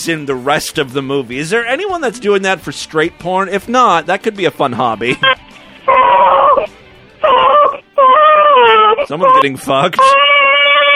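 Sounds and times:
speech: 0:00.0 - 0:05.4, 0:09.1 - 0:10.2
baby crying loudly: 0:05.1 - 0:10.9.

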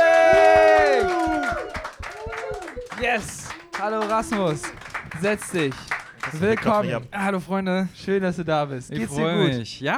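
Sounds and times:
live audience cheering and whooping: 0:00.0 - 0:03.8
rhythmic clapping: 0:00.0 - 0:07.0
speech: 0:03.1 - 0:09.9.

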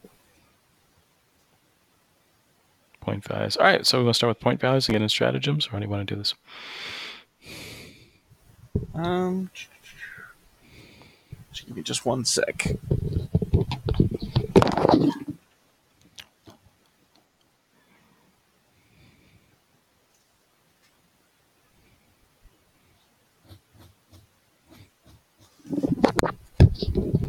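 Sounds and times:
speech: 0:03.1 - 0:07.6, 0:09.0 - 0:09.8, 0:11.6 - 0:13.4
paper being grabbed and rustled: 0:12.6 - 0:15.4, 0:25.4 - 0:27.2.

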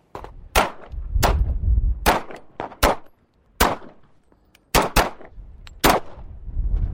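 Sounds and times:
gunshots at a gun range: 0:00.5 - 0:01.4, 0:02.0 - 0:04.0, 0:04.7 - 0:06.2.

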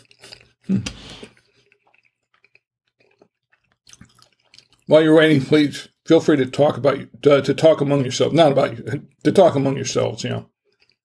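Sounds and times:
person chewing a big bite of food: 0:00.0 - 0:04.9, 0:10.5 - 0:11.0
speech: 0:00.7 - 0:01.3, 0:04.9 - 0:10.5.

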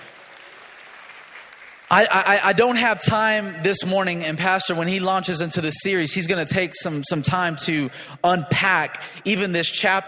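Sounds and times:
audience applause: 0:00.0 - 0:02.1
speech: 0:01.9 - 0:10.0.

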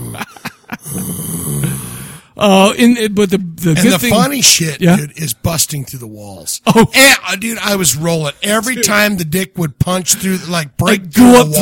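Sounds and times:
voice imitating a growl: 0:00.0 - 0:02.2
speech: 0:02.4 - 0:11.6.

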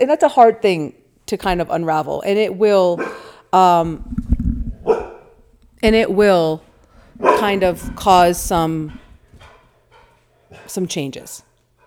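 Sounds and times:
speech: 0:00.0 - 0:04.2, 0:05.8 - 0:09.0, 0:10.6 - 0:11.5
excited dog barking: 0:03.0 - 0:03.3, 0:04.8 - 0:05.5, 0:07.0 - 0:09.7
soft scuffling: 0:03.6 - 0:09.6.

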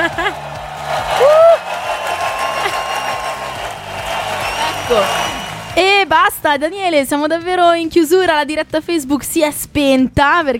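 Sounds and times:
laughter: 0:00.0 - 0:01.5, 0:02.3 - 0:05.2
applause: 0:00.0 - 0:06.4
crowd cheering: 0:00.0 - 0:06.4
speech: 0:04.9 - 0:05.2, 0:06.1 - 0:10.5.

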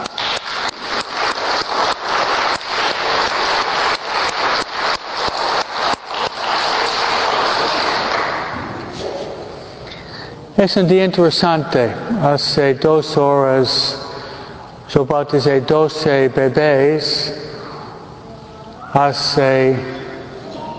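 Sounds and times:
crowd applause: 0:00.0 - 0:08.6
speech: 0:10.6 - 0:14.0, 0:14.9 - 0:17.5, 0:18.9 - 0:20.0.

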